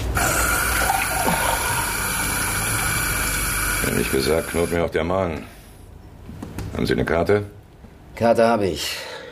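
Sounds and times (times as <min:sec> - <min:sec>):
tap running to fill a glass of water: 0:00.2 - 0:04.8
speech: 0:04.0 - 0:05.6, 0:06.8 - 0:07.6, 0:08.2 - 0:09.1.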